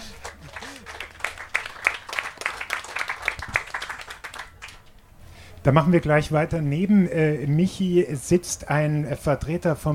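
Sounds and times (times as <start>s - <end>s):
audience applause: 0.0s - 4.9s
speech: 5.6s - 9.9s.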